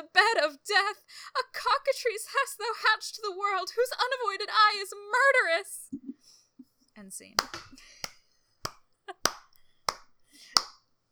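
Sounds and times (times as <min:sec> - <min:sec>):
speech: 0:00.2 - 0:06.1, 0:07.0 - 0:08.0
clapping for a performance: 0:07.4 - 0:10.8.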